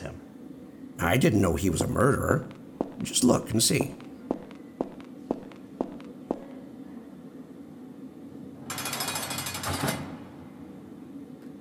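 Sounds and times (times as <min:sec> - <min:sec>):
speech: 0:01.0 - 0:04.0
footsteps walking over to a desk: 0:01.8 - 0:06.5.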